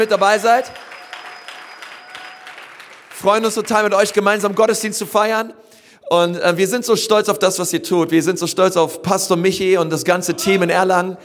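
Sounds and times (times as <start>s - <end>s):
speech: 0.0s - 0.9s, 3.2s - 11.2s
audience applause in church: 0.0s - 5.1s.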